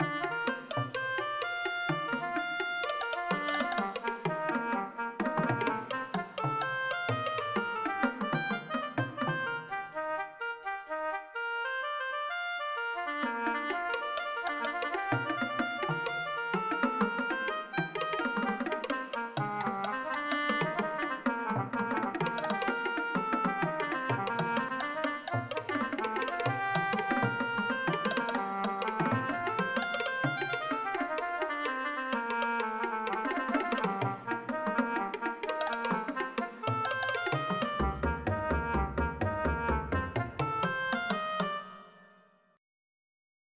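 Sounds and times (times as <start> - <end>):
wooden oboe: 0.0 - 42.2.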